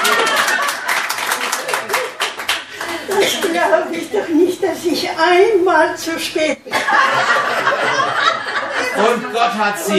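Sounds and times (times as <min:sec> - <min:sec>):
hand clapping: 0:00.0 - 0:03.6
laughter: 0:00.0 - 0:05.6, 0:06.6 - 0:09.9
murmuring voices: 0:02.6 - 0:06.6
speech: 0:04.2 - 0:07.7, 0:09.0 - 0:09.9.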